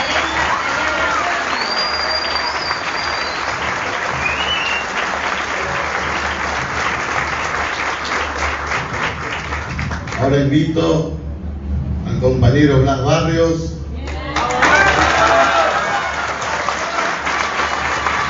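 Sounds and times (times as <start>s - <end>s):
faint whistles: 0.0s - 0.6s, 1.4s - 5.1s
audience applause: 0.0s - 10.2s, 14.1s - 18.2s
speech: 10.4s - 11.2s, 12.6s - 13.8s.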